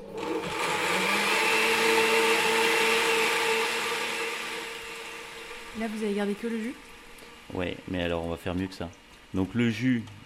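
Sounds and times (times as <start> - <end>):
blender mixing squash seeds and pulp with maple syrup and cinnamon: 0.0 - 7.7
speech: 5.8 - 6.9, 7.5 - 10.2.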